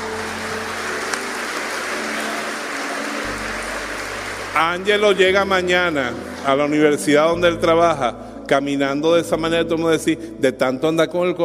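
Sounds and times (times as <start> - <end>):
crowd clapping: 0.0 - 7.6
speech: 4.6 - 11.4.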